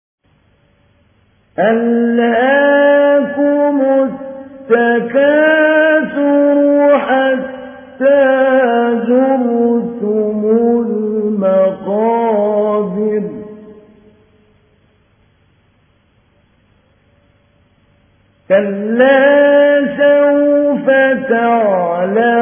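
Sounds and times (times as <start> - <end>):
mujawwad Quran recitation: 1.6 - 14.0, 18.5 - 22.3.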